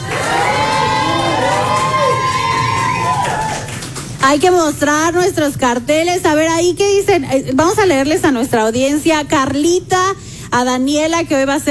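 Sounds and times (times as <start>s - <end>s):
cheering squads at a quiz show shouting and cheering: 0.0s - 4.0s
speech: 4.3s - 11.6s.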